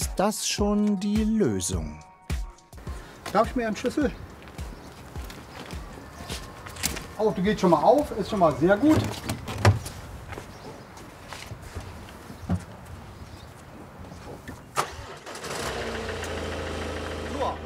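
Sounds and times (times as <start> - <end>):
speech: 0.2 - 2.1, 3.3 - 4.3, 7.2 - 9.4
car engine starting and idling after jump-start: 14.7 - 17.6.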